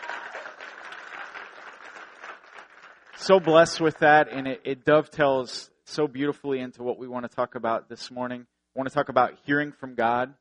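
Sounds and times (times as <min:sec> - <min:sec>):
round of applause: 0:00.0 - 0:04.3
speech: 0:03.2 - 0:10.3.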